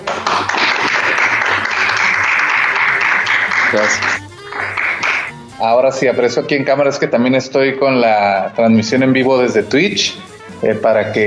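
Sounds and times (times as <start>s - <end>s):
crowd applauding: 0.0s - 5.3s
speech: 3.7s - 4.2s, 5.6s - 11.2s.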